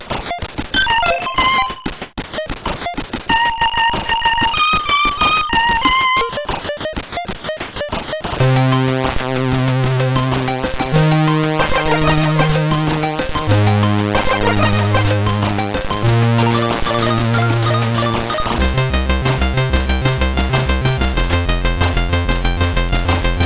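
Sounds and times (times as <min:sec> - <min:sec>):
SID CSG8580 chip music: 0:00.3 - 0:01.8, 0:02.4 - 0:23.4.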